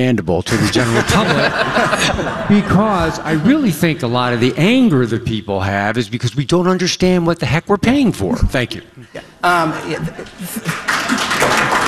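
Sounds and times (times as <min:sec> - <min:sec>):
speech: 0:00.0 - 0:11.8
laughter: 0:00.5 - 0:05.4, 0:08.3 - 0:11.8
round of applause: 0:10.6 - 0:11.8.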